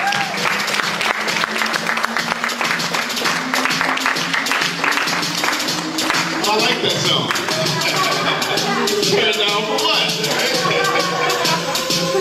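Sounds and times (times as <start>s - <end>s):
audience round of applause: 0.0s - 8.0s
laughter: 6.6s - 12.2s.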